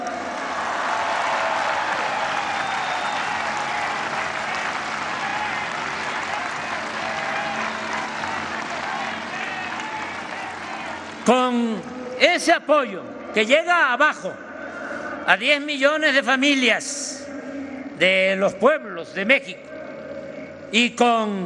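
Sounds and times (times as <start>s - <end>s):
faint cheers and voices: 0.0s - 11.3s
applause from a large crowd: 0.0s - 11.6s
speech: 11.3s - 14.4s, 15.2s - 17.1s, 18.0s - 19.7s, 20.7s - 21.4s.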